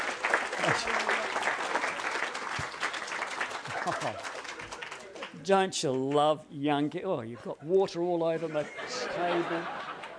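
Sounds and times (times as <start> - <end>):
audience applause: 0.0 - 5.4, 9.6 - 10.1
laughter: 0.6 - 1.5, 3.6 - 5.2, 7.2 - 10.1
speech: 0.7 - 1.1, 3.9 - 4.3, 5.4 - 9.8.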